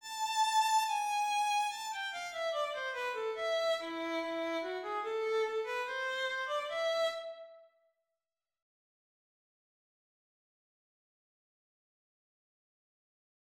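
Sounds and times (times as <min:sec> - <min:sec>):
violin concerto: 0:00.0 - 0:07.5.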